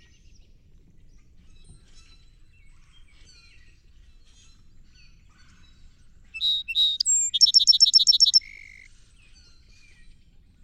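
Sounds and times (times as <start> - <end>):
song sparrow singing: 3.0 - 8.9.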